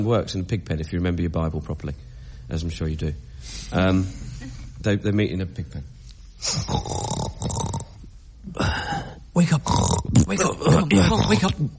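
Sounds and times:
speech: 0.0 - 7.8, 8.5 - 11.7
loud snoring: 6.5 - 8.0, 9.7 - 11.4.

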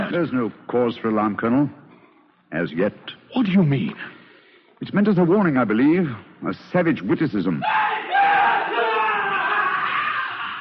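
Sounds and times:
speech: 0.1 - 1.8, 2.5 - 4.2, 4.8 - 7.8
man imitating a tortured captive's screams: 7.6 - 10.5.

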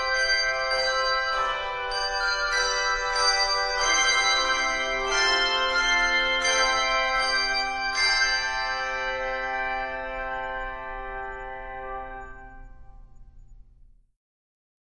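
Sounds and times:
handbells ringing: 0.0 - 11.4.

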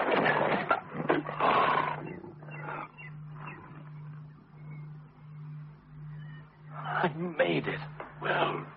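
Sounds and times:
lion roaring as it leaps: 0.1 - 3.9
speech: 7.1 - 8.7.

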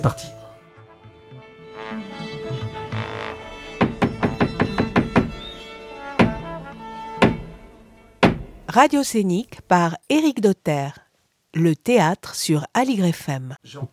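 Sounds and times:
speech: 0.0 - 0.4, 8.7 - 11.0, 11.6 - 13.9
theatre knocks opening a French stage show: 3.8 - 5.5, 6.2 - 6.5, 7.2 - 7.5, 8.2 - 8.6.

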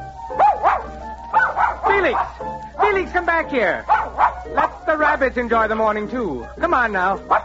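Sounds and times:
dog barking in a field: 0.3 - 3.1, 3.8 - 4.9, 7.2 - 7.4
speech: 3.2 - 3.9, 4.5 - 7.4.

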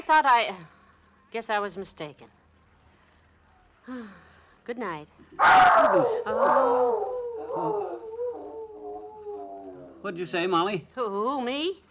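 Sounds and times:
speech: 0.1 - 2.4, 3.9 - 8.0, 10.0 - 11.8
dog howling: 5.4 - 10.0.

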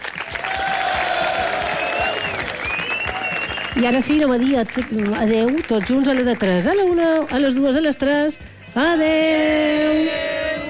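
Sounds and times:
audience applause: 0.0 - 7.6
whistles and cheers: 0.3 - 4.2
speech: 3.8 - 10.3.

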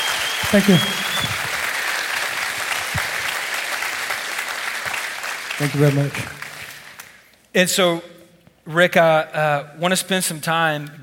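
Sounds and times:
audience applauding to welcome a guest: 0.0 - 7.3
speech: 0.5 - 1.3, 5.6 - 6.4, 7.6 - 8.1, 8.7 - 11.0.

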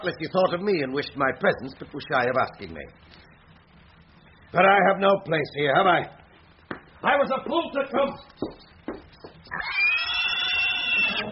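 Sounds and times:
speech: 0.0 - 3.2, 4.5 - 6.2, 7.0 - 8.7
pigs grunting: 9.5 - 11.3.

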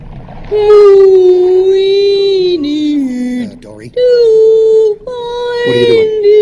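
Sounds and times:
speech: 0.5 - 1.0
voice imitating whale speech: 0.6 - 6.4
faint murmuring: 1.5 - 6.4.

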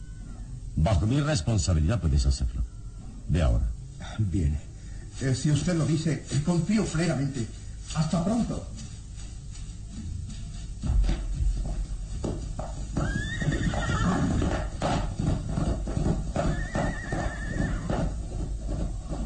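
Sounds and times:
speech: 0.8 - 2.7, 3.3 - 8.8
horse galloping away: 5.1 - 19.2
horse whinnying: 13.0 - 18.3.

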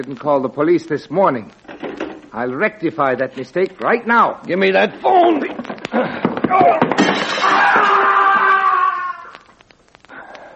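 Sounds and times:
speech: 0.0 - 1.7, 2.3 - 6.9
person knocked through a glass window: 5.0 - 8.5.

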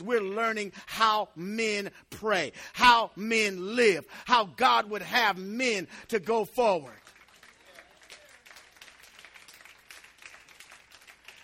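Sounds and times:
speech: 0.0 - 7.2
audience clapping: 6.6 - 11.4.

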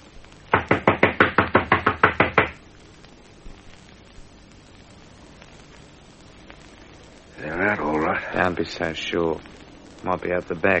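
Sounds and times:
loud knocks on a door: 0.5 - 2.6
speech: 8.5 - 10.7.

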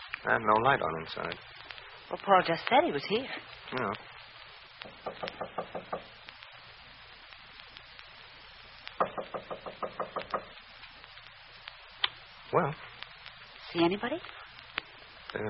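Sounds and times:
speech: 0.2 - 4.1, 13.8 - 14.4
firm rapid knocking on a door: 4.9 - 6.1, 9.0 - 10.5.

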